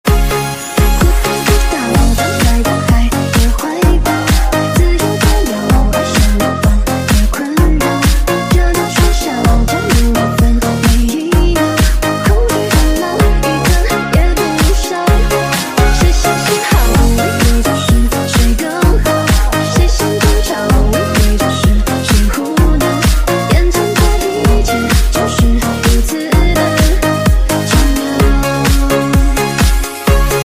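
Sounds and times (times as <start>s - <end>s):
Chinese music remix: 0.0s - 30.4s.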